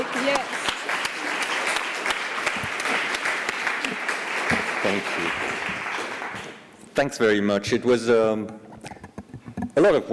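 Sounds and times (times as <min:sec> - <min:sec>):
audience applause: 0:00.0 - 0:06.6
speech: 0:07.0 - 0:08.6, 0:09.8 - 0:10.1.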